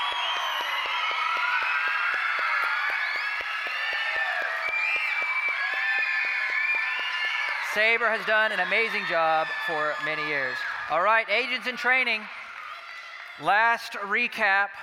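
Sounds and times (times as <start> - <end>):
whoops and cheers: 0.0 - 11.0
audience applause: 0.0 - 11.1
speech: 7.8 - 12.4, 13.4 - 14.8.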